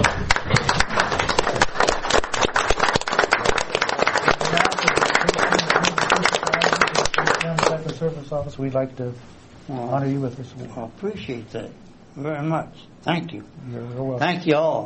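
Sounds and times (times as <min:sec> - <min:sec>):
audience applause: 0:00.0 - 0:08.0
speech: 0:08.3 - 0:14.8.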